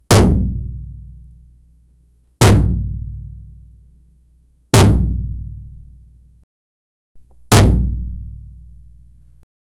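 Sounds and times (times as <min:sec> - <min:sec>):
powerful punches: 0:00.1 - 0:00.9, 0:02.4 - 0:03.1, 0:04.8 - 0:05.4, 0:07.5 - 0:08.3.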